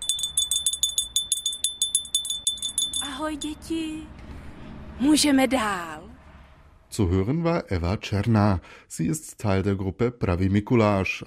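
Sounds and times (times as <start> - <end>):
doorbell ringing: 0.0 - 3.7
speech: 3.2 - 4.2, 5.0 - 6.1, 6.9 - 11.2.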